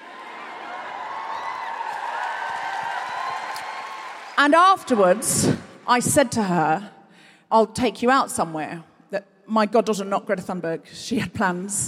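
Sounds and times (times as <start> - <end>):
audience cheering and applauding: 0.0 - 6.0
speech: 4.4 - 11.8.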